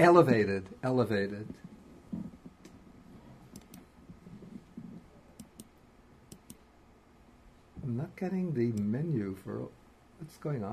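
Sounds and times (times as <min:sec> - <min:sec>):
speech: 0:00.0 - 0:02.2, 0:07.8 - 0:10.7
faint hum: 0:00.0 - 0:10.7
quiet computer mouse clicks: 0:03.5 - 0:03.9, 0:05.4 - 0:05.7, 0:06.3 - 0:06.6.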